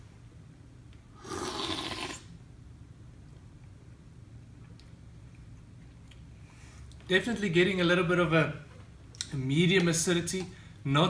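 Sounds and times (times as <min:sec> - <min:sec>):
person slurping a tasting sample: 0:01.2 - 0:02.3
speech: 0:07.1 - 0:08.7, 0:09.3 - 0:11.0.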